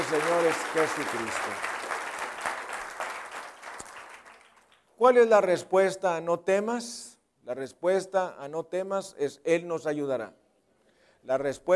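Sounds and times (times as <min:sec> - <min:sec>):
audience applauding: 0:00.0 - 0:04.9
speech: 0:00.1 - 0:01.8, 0:05.0 - 0:10.4, 0:11.2 - 0:11.7.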